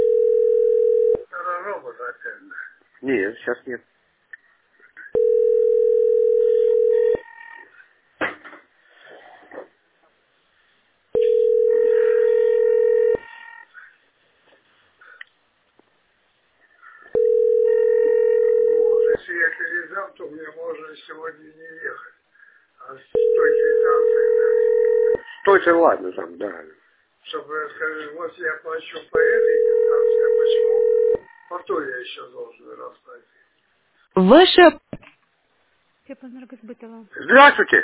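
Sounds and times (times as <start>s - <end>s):
phone line ringback tone: 0.0s - 1.2s, 5.2s - 7.7s, 11.2s - 13.7s, 17.1s - 19.2s, 23.2s - 25.6s, 29.2s - 31.5s
speech: 2.3s - 4.0s, 25.7s - 33.4s, 34.2s - 34.8s, 36.1s - 37.8s.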